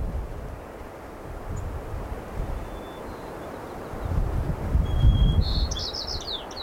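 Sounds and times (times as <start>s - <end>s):
wind rushing through grasses and willows: 0.0s - 6.6s
high bird chirps: 2.5s - 4.2s, 4.8s - 6.6s.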